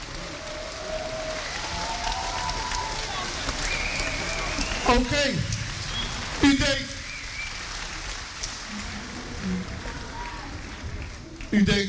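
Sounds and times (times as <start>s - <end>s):
crowd applause: 0.0s - 11.8s
whoops and whistles: 3.6s - 4.9s
speech: 4.9s - 5.6s, 6.4s - 7.0s, 11.6s - 11.8s.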